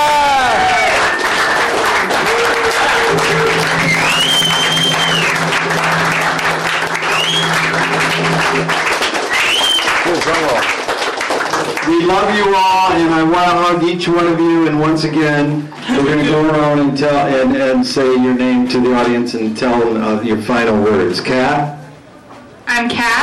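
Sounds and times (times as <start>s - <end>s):
audience giving a standing ovation at an evening event: 0.0s - 12.9s
speech: 12.4s - 21.8s.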